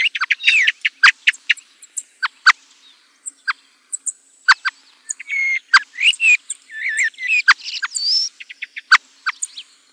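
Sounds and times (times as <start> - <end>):
common blackbird song of chirps, clicks and whistled slurs: 0.0 - 9.9.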